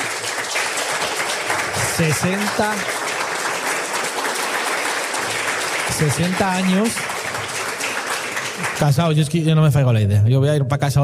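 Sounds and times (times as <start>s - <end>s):
audience applause: 0.0s - 9.5s
speech: 2.0s - 3.0s, 6.0s - 7.1s, 8.6s - 11.0s.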